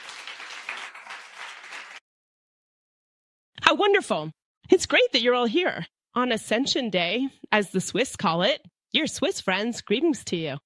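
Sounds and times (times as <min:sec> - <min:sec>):
audience round of applause for a worship team: 0:00.0 - 0:02.0
speech: 0:03.7 - 0:10.6.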